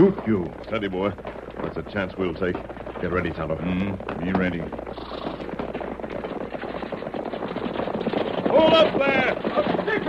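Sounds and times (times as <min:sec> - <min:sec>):
speech: 0:00.0 - 0:05.2, 0:08.5 - 0:09.4
gunshots fired: 0:04.7 - 0:10.0.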